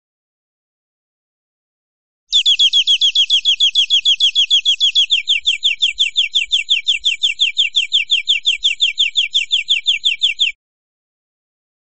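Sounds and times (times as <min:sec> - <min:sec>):
European greenfinch buzzy trill: 0:02.3 - 0:10.6.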